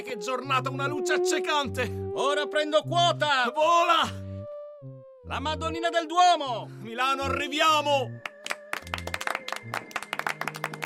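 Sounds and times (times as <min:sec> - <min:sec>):
speech: 0:00.0 - 0:04.2, 0:05.3 - 0:08.3
crowd applause: 0:08.4 - 0:10.8.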